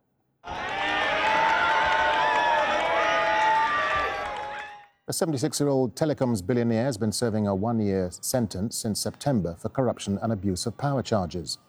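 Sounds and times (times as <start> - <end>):
crowd of supporters cheering and shouting: 0.4 - 4.8
speech: 5.1 - 11.6.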